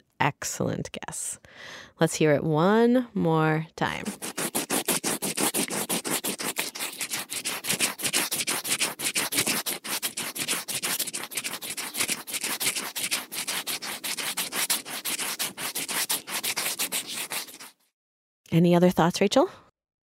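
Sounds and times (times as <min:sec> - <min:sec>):
speech: 0:00.2 - 0:04.4, 0:18.6 - 0:19.6
finger rubbing against a paper wasp nest: 0:04.0 - 0:17.8.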